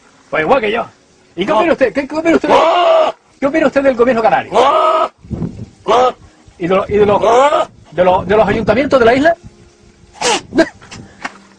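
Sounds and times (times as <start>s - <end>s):
speech: 0.3s - 2.8s, 3.4s - 9.5s
goat bleating: 2.4s - 3.2s, 4.4s - 5.1s, 5.8s - 6.2s, 7.2s - 7.7s.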